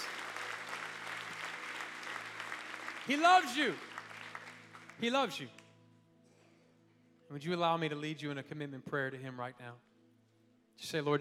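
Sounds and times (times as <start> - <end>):
audience applause: 0.0 - 5.2
speech: 3.1 - 3.9, 5.0 - 5.6, 7.3 - 9.9, 10.8 - 11.1.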